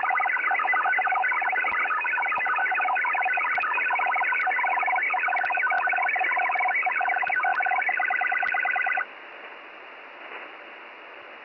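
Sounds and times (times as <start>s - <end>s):
Chinese military robust 83.55 Bd 8-FSK radio data signal: 0.0s - 9.0s.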